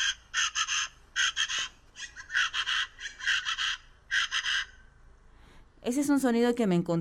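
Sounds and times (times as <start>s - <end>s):
chachalacas calling: 0.0s - 5.0s
speech: 5.8s - 6.9s.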